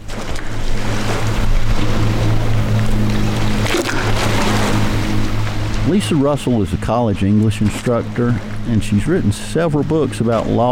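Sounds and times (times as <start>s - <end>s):
Notley River water washing against a World War II-era dam's rocky edge: 0.0s - 10.6s
low constant drone: 0.0s - 10.6s
speech: 5.9s - 10.6s.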